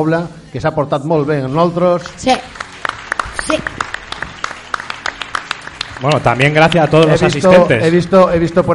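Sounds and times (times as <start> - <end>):
speech: 0.0 - 2.6, 3.4 - 3.8, 6.0 - 8.7
audience applause: 2.0 - 8.0.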